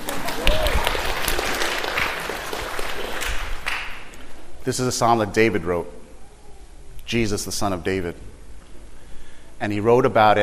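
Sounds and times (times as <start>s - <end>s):
audience applause: 0.0s - 4.1s
speech: 4.7s - 6.0s, 7.1s - 8.3s, 9.6s - 10.4s.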